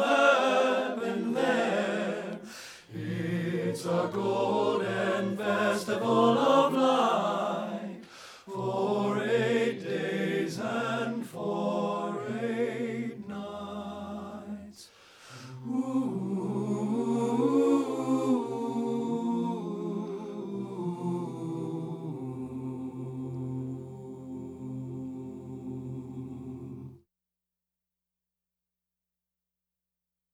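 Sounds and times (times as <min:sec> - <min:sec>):
tenor voice singing in a choral arrangement: 0:00.0 - 0:27.0.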